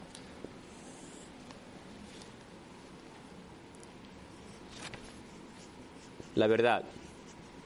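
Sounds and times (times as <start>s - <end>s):
writing on a board: 4.3s - 7.6s
speech: 6.4s - 7.0s.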